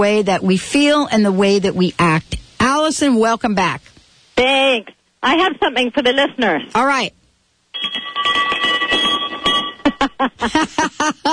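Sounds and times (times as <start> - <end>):
speech: 0.0 - 7.2, 7.8 - 8.4, 10.1 - 11.3
ship's bell ringing: 7.8 - 10.0.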